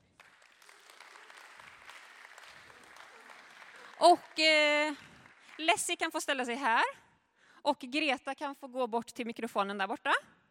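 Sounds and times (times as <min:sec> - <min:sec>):
audience applause: 0:00.0 - 0:05.8
speech: 0:04.0 - 0:07.0, 0:07.6 - 0:10.4.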